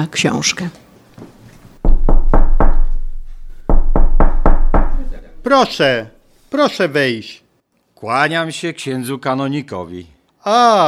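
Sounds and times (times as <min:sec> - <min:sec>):
speech: 0:00.0 - 0:00.8, 0:05.5 - 0:07.4, 0:08.0 - 0:10.8
knocking on a door: 0:01.8 - 0:05.8.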